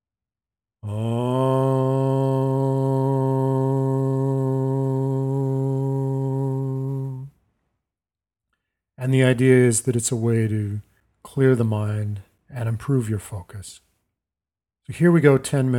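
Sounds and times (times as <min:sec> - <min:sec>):
speech: 0:00.8 - 0:01.2, 0:09.1 - 0:13.9, 0:14.9 - 0:15.7
meditation chant hum on the out-breath: 0:00.8 - 0:07.3.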